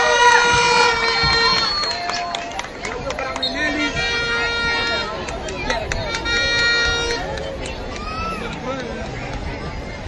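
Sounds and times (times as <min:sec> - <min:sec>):
applause for a band: 0:00.1 - 0:03.9, 0:04.8 - 0:08.9.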